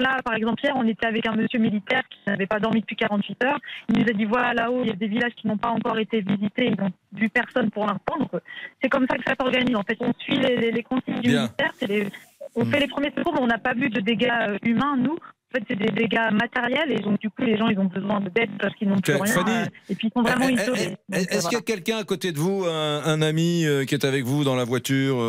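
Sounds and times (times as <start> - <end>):
speech: 0.0 - 25.2
voice through a thin phone line: 10.3 - 13.0, 18.5 - 25.2.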